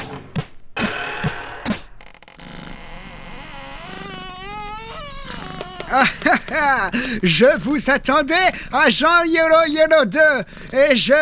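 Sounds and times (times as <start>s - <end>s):
large door slowly opening: 2.0s - 6.4s
laughter: 5.9s - 7.1s
speech: 5.9s - 11.2s.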